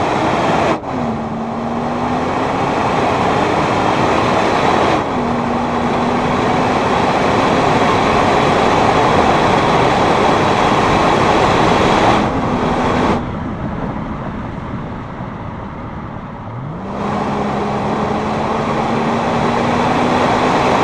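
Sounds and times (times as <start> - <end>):
Volvo XC70 car: 0.0 - 20.8.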